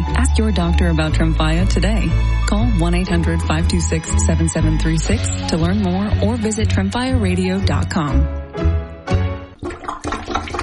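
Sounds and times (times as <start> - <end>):
speech: 0.3 - 8.8
plunger working a clogged drain with wet squelching gurgles: 9.6 - 10.6.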